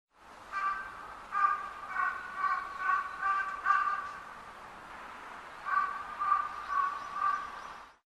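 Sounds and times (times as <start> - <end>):
raven calling: 0.5 - 4.3, 5.5 - 7.8.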